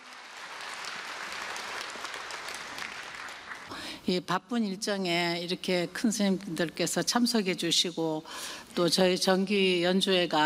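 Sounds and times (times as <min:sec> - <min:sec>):
audience applause: 0:00.0 - 0:03.7
speech: 0:03.9 - 0:10.4.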